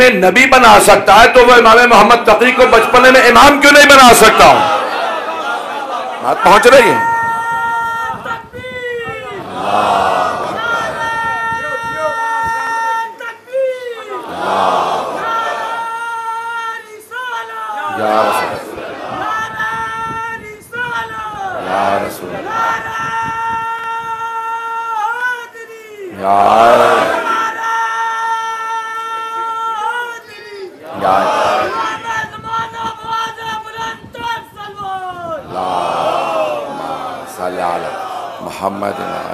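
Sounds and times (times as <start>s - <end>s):
speech: 0.0s - 4.7s, 6.2s - 7.1s, 26.2s - 27.0s, 38.6s - 39.3s
large crowd chanting slogans: 2.6s - 6.4s, 9.2s - 12.7s, 14.1s - 16.5s, 17.7s - 23.6s, 26.0s - 28.2s, 29.3s - 34.2s, 35.4s - 39.3s.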